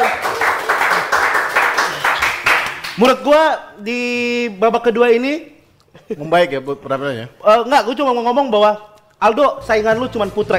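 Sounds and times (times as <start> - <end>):
audience applause: 0.0 - 3.0
speech: 3.0 - 10.5.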